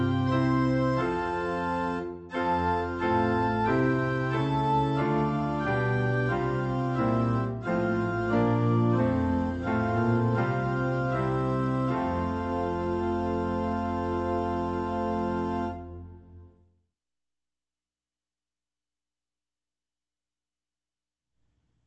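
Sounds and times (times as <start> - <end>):
instrumental praise and worship hymn: 0.0 - 16.6.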